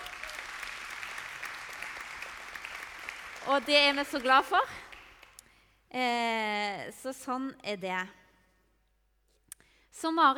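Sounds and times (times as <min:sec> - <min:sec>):
audience applause: 0:00.0 - 0:05.2
speech: 0:03.4 - 0:04.8, 0:05.9 - 0:08.2, 0:10.0 - 0:10.3.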